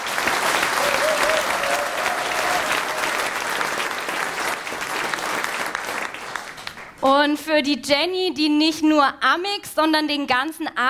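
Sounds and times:
audience applause: 0.0 - 7.0
speech: 7.0 - 10.8.

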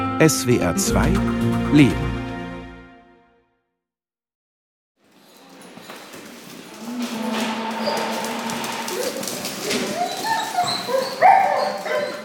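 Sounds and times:
speech: 0.2 - 2.2
Irish Setter-Poodle-Retriever mix dog whining and whimpering straining on its leash: 6.7 - 12.2.

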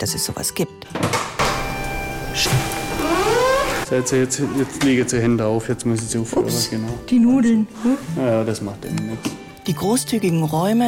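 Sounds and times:
speech: 0.0 - 1.4, 2.4 - 3.2, 3.9 - 10.8
electric motor of remote-controlled kitchen cabinets raised and lowered: 1.4 - 3.9.

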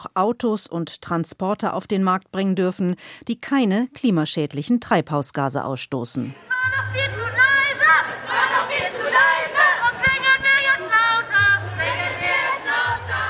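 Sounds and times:
speech: 0.1 - 7.4
crowd chanting: 6.3 - 13.2.

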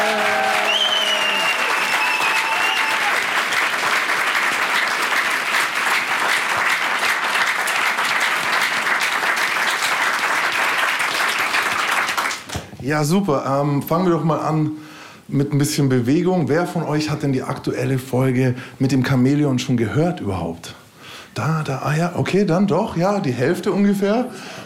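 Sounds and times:
large crowd applause: 0.0 - 12.6
whistles: 0.5 - 3.1
speech: 12.9 - 20.8, 21.4 - 24.6.

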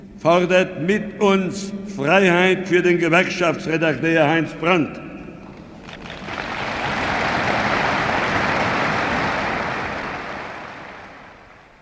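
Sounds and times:
speech: 0.2 - 5.1
strong applause from congress delegates: 5.7 - 11.8.

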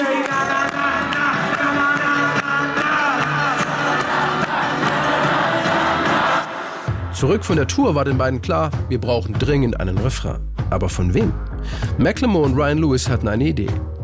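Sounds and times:
concert crowd singing along la la la: 0.0 - 6.9
speech: 7.2 - 13.8.

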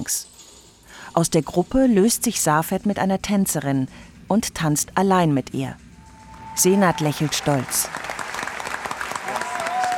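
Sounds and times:
speech: 0.0 - 0.3, 1.2 - 5.8, 6.6 - 8.0
enthusiastic clapping: 7.6 - 9.9.

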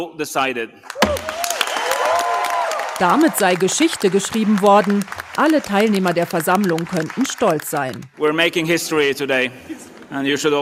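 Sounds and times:
speech: 0.0 - 1.4, 3.0 - 10.6
crowd applause at an assembly: 0.9 - 8.2
voices cheering and whooping: 1.1 - 3.8.

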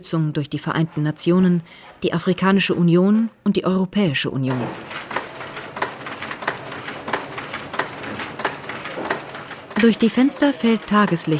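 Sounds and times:
speech: 0.0 - 5.1, 9.8 - 11.3
printing presses running in a daylit print workshop: 4.5 - 11.3.

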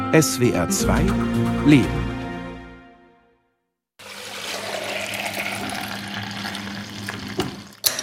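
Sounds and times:
speech: 0.1 - 2.1
raw milk running from a shiny milk tank into bottles: 4.0 - 7.9.

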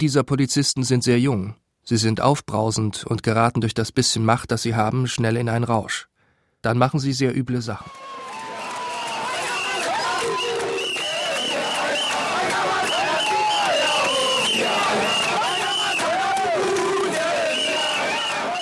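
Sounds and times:
speech: 0.0 - 8.2
crowd protesting against police brutality in Mathare: 7.9 - 18.6.

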